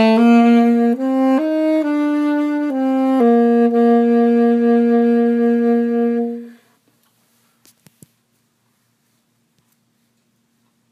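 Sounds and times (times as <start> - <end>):
alto saxophone: 0.0 - 6.7.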